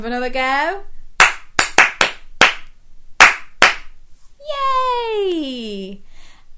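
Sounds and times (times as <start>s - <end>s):
speech: 0.0s - 0.9s, 4.5s - 6.5s
hand claps in a children's clapping game: 1.2s - 3.9s.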